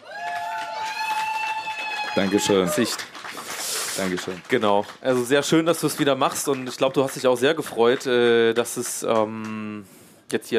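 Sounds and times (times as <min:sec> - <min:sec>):
live audience cheering: 0:00.0 - 0:04.5
live audience applause: 0:00.0 - 0:09.4
speech: 0:02.2 - 0:03.2, 0:04.0 - 0:10.5.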